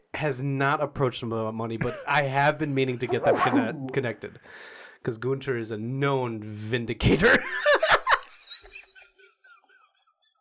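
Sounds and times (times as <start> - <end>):
speech: 0.2 - 7.8
laughter: 1.8 - 4.1, 7.1 - 9.9
person sneezing: 3.1 - 4.0.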